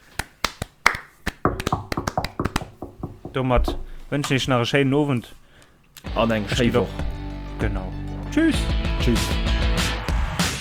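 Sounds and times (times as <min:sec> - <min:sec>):
hand clapping: 0:00.0 - 0:03.4
speech: 0:03.4 - 0:05.4, 0:06.1 - 0:07.0, 0:07.6 - 0:09.6.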